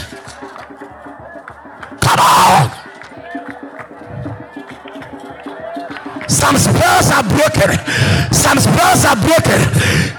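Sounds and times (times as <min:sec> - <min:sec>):
audience clapping: 0:00.0 - 0:07.8
crowd noise: 0:00.0 - 0:10.1
shouts: 0:00.4 - 0:10.1
speech: 0:06.4 - 0:10.1.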